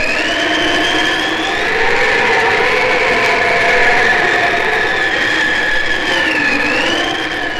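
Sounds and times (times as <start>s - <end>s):
blizzard wind: 0.0s - 7.5s.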